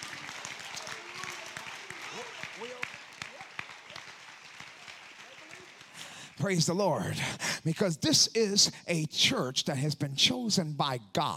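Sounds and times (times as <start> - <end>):
audience clapping hands: 0.0 - 7.1
speech: 6.4 - 11.3.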